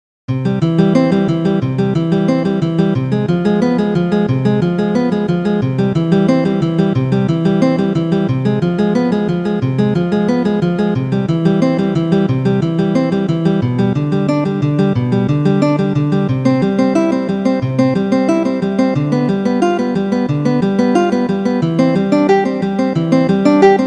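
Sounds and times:
prelude music: 0.3s - 23.8s.

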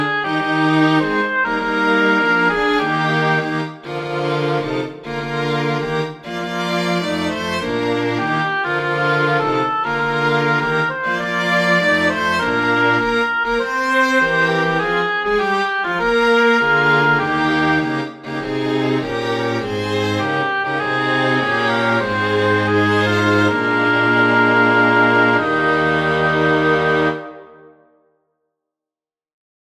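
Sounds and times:
strings: 0.0s - 27.8s
oboe: 0.0s - 27.9s.

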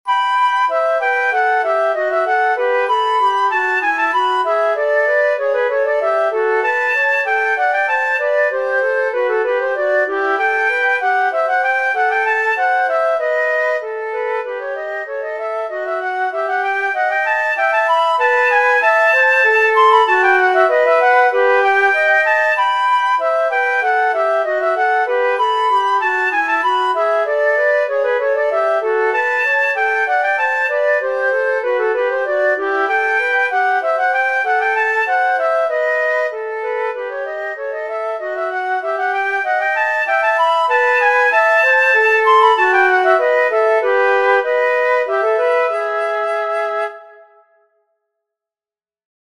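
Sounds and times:
air and hornpipe tune: 0.0s - 47.6s.

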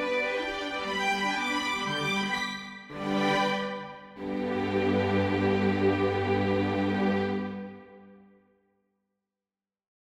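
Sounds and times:
string quartet: 0.0s - 8.0s.

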